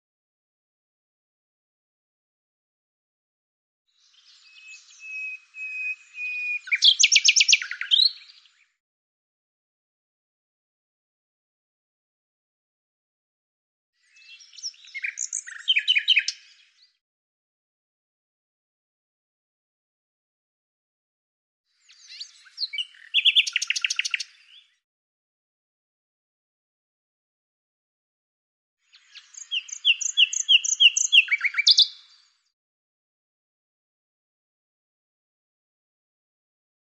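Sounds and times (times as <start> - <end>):
bird song: 3.9 - 8.8, 14.0 - 17.0, 21.7 - 24.8, 28.8 - 32.6.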